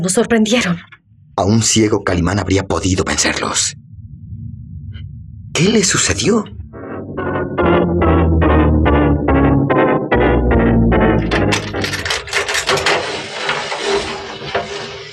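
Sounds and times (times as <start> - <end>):
speech: 0.0 - 3.8, 5.6 - 6.6
door creaking open: 6.7 - 15.1
metallic clanks from the lock and bolt: 11.2 - 13.1.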